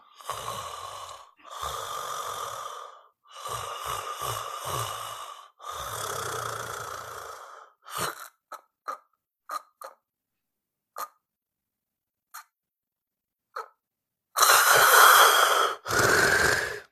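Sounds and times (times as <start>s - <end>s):
gasping snorting breaths: 0.0s - 8.4s, 14.4s - 16.8s
person imitating sleep apnea snoring: 0.0s - 10.0s, 14.4s - 16.8s.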